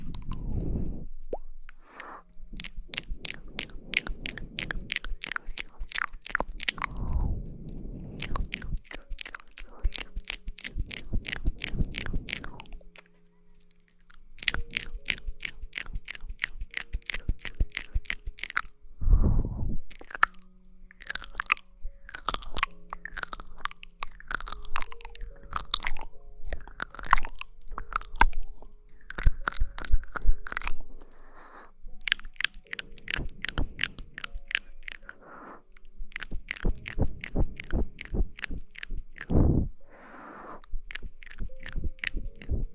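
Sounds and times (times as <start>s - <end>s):
rapid wet mouth clicks and smacks: 0.0s - 0.7s, 2.5s - 7.3s, 8.1s - 18.7s, 19.9s - 30.8s, 32.0s - 35.2s, 35.8s - 39.5s, 40.6s - 42.7s
crunchy chewing noises: 0.0s - 0.8s, 1.8s - 7.3s, 8.0s - 18.8s, 19.9s - 31.2s, 32.0s - 39.5s, 40.6s - 42.7s
faint low hum: 0.0s - 42.7s.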